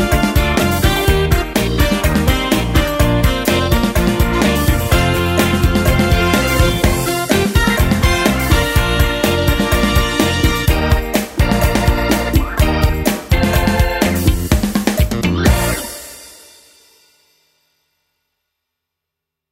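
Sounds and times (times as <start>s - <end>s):
70s pop organ beat: 0.0s - 16.1s.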